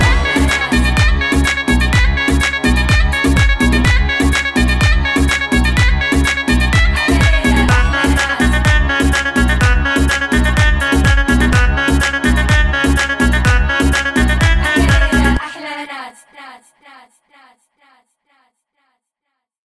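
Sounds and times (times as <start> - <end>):
beats: 0.0 - 15.4.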